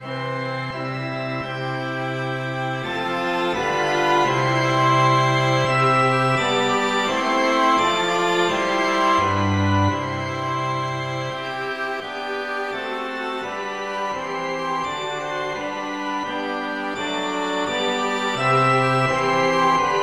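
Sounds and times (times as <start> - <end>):
multi-instrument music: 0.0 - 20.0.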